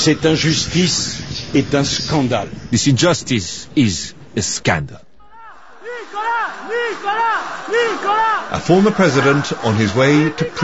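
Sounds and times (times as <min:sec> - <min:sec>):
speech: 0:00.0 - 0:05.1, 0:06.7 - 0:10.6
small crowd shouting cries of support as Nicolas Sarkozy leaves his home for prison: 0:05.2 - 0:10.6.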